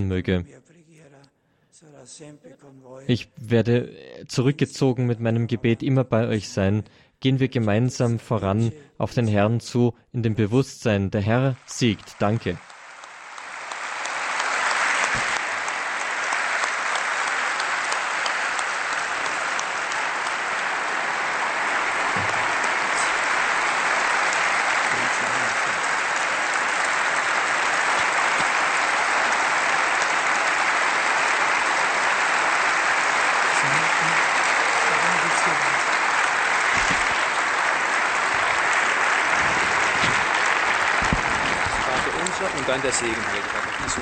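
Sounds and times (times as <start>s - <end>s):
speech: 0.0s - 0.7s, 1.8s - 12.7s
sustained applause: 11.2s - 44.0s.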